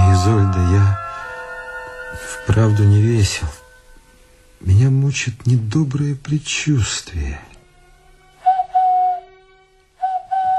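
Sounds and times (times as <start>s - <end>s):
speech: 0.2s - 1.0s, 2.1s - 3.6s, 4.6s - 7.5s
man whistling a birdlike signal call: 8.5s - 9.3s, 10.0s - 10.5s.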